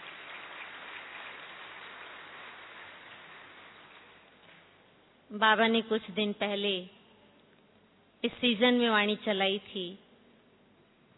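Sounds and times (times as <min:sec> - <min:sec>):
crowd applauding: 0:00.0 - 0:04.2
speech: 0:05.3 - 0:07.0, 0:08.2 - 0:10.0.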